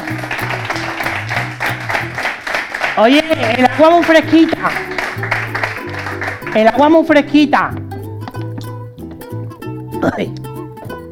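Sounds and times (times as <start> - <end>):
applause: 0.0 - 7.0
speech: 3.0 - 5.0, 6.6 - 7.8, 10.0 - 10.4.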